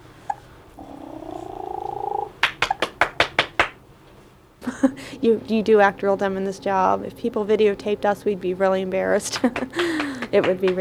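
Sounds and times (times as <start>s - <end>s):
woman making purring sound: 0.2s - 3.3s
hands clapping: 0.3s - 4.2s, 9.2s - 10.7s
laughter: 2.3s - 3.7s, 4.6s - 5.7s, 8.9s - 10.7s
speech: 4.8s - 10.7s.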